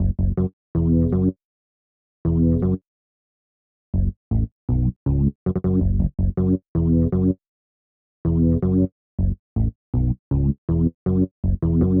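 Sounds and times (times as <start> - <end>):
synth bass: 0.0 - 1.3, 2.3 - 2.8, 4.0 - 7.4, 8.3 - 11.9.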